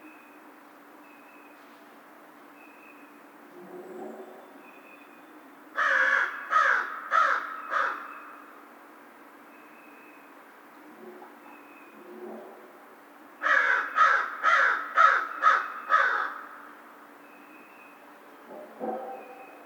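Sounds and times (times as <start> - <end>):
American crow cawing: 5.8 - 8.2, 13.4 - 16.7.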